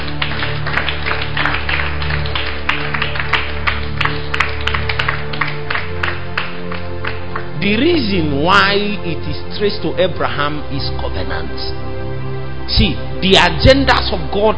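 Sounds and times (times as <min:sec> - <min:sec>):
audience clapping: 0:00.0 - 0:08.0
speech: 0:07.6 - 0:12.0, 0:12.7 - 0:14.5.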